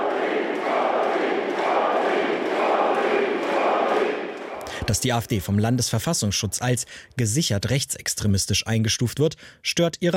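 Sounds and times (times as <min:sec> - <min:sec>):
rally crowd cheering: 0:00.0 - 0:05.2
speech: 0:04.9 - 0:10.1.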